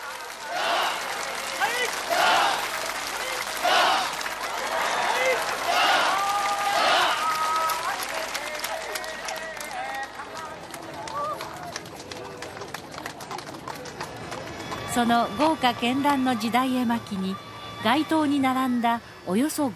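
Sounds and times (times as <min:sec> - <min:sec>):
street crowd applause at the Hyakumangoku parade in Kanazawa: 0:00.0 - 0:15.6
speech: 0:15.0 - 0:19.7.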